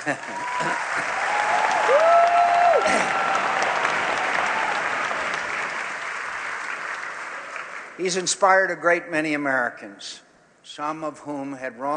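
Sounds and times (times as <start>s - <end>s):
speech: 0.0s - 1.4s, 8.0s - 11.9s
large crowd applauding a political speech: 0.0s - 8.0s.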